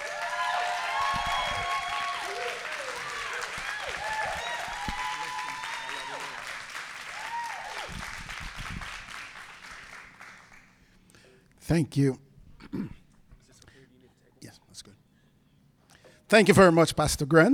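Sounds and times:
church congregation applauding to welcome a guest pastor: 0.0 - 11.0
speech: 11.7 - 12.2, 16.3 - 17.5.

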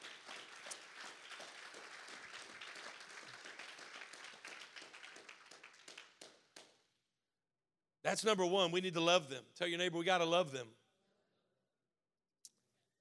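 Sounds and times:
audience clapping: 0.0 - 6.8
speech: 8.1 - 10.8.

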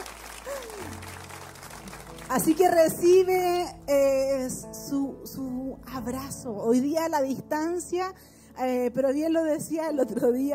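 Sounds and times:
audience applause: 0.0 - 2.6
speech: 2.3 - 10.5.

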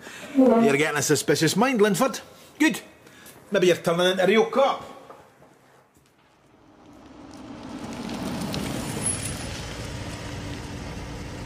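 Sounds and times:
speech: 0.3 - 2.9, 3.5 - 5.0
Jaguar XK8 car engine and road noise while driving: 6.4 - 11.4.

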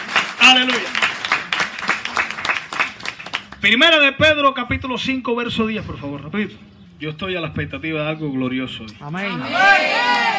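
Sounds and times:
audience applauding: 0.0 - 3.6
speech: 0.5 - 1.0, 3.6 - 10.3.

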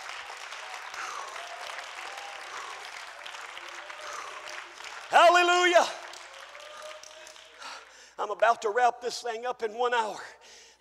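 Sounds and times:
audience clapping hands: 0.0 - 8.4
speech: 5.4 - 6.0, 8.3 - 10.4.

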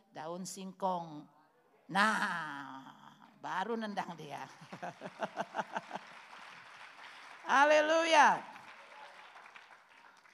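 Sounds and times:
speech: 0.2 - 6.2, 7.5 - 8.5
laughter: 4.6 - 6.4
weak audience applause: 4.6 - 10.3.

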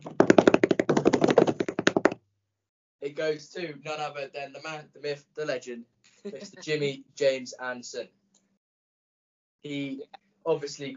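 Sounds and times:
drum roll tapped on a hard surface: 0.0 - 2.2
speech: 3.1 - 8.2, 9.6 - 10.9.

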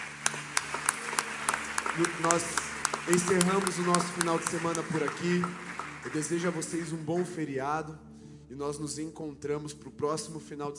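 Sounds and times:
audience clapping hands: 0.0 - 7.4
speech: 2.0 - 10.7.

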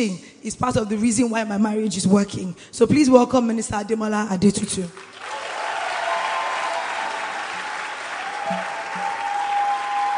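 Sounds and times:
speech: 0.0 - 5.2
audience clapping: 5.0 - 10.1.

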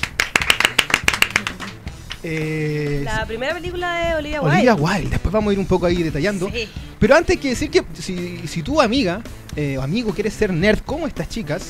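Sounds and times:
audience applause: 0.0 - 2.4
speech: 2.2 - 11.6.

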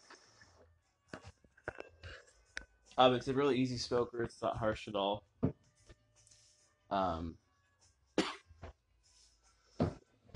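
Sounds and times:
speech: 3.0 - 5.3, 6.9 - 7.4
person coughing: 8.2 - 8.4.

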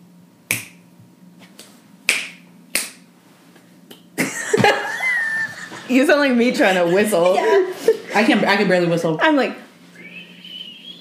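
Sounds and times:
finger snaps: 0.5 - 0.8, 1.6 - 3.0, 3.8 - 4.1
laughter: 4.2 - 8.5
speech: 5.9 - 9.6.

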